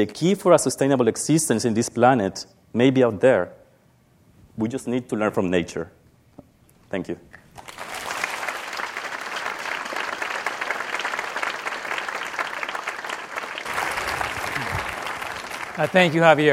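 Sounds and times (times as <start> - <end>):
speech: 0.0 - 3.6, 4.6 - 6.0, 6.9 - 7.8, 15.8 - 16.5
audience applause: 7.6 - 16.5.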